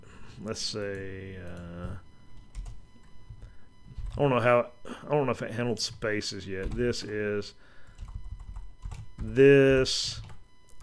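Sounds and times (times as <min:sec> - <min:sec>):
speech: 0:00.4 - 0:02.1, 0:04.2 - 0:07.7, 0:09.2 - 0:10.2
typing on a computer keyboard during a programming demonstration: 0:00.8 - 0:03.4, 0:04.0 - 0:04.2, 0:05.9 - 0:06.9, 0:07.8 - 0:10.8.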